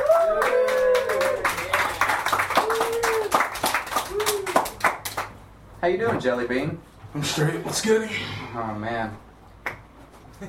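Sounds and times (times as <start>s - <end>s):
audience voices whooping and calling out: 0.0s - 4.8s
comedy talk show audience clapping for a guest: 0.0s - 5.4s
speech: 5.8s - 9.3s.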